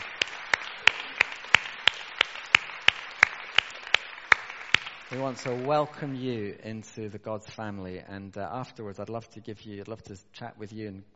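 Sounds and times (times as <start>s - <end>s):
round of applause: 0.0s - 6.4s
speech: 5.1s - 11.1s.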